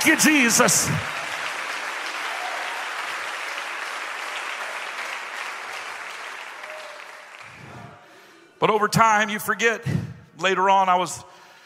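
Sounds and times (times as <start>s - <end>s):
speech: 0.0s - 1.2s, 8.6s - 11.4s
audience clapping hands: 0.0s - 8.2s.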